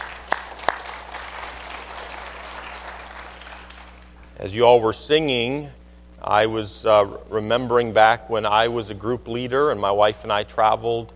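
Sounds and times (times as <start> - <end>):
church congregation clapping for the music group: 0.0 - 4.4
speech: 4.4 - 11.1.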